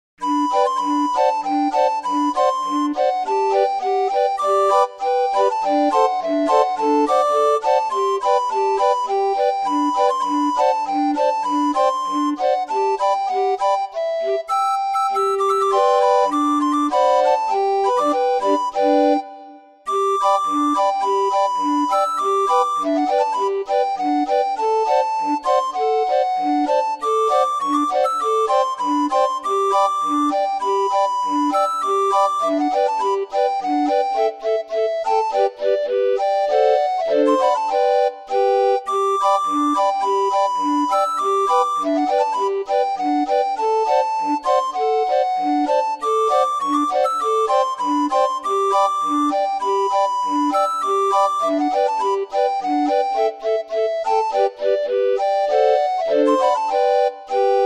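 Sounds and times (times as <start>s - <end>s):
barrel organ march: 0.2s - 57.6s.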